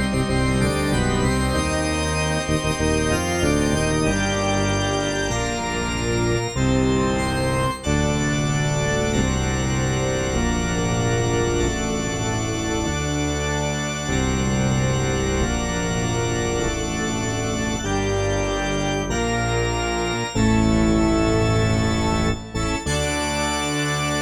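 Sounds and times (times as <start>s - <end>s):
church organ: 0.0s - 24.2s.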